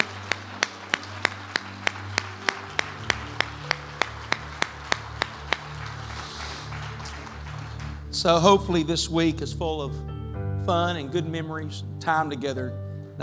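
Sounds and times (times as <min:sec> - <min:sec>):
audience clapping hands: 0:00.0 - 0:08.5
speech: 0:08.2 - 0:10.1, 0:10.7 - 0:13.2.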